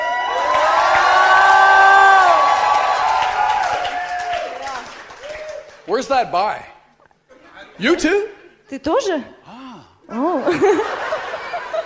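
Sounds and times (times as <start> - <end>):
drawn-out whooping shout: 0.0 - 5.7
audience shouting and cheering: 0.0 - 5.9, 10.8 - 11.8
speech: 6.0 - 6.7, 7.8 - 9.4, 10.1 - 11.1
laughter: 10.1 - 11.8.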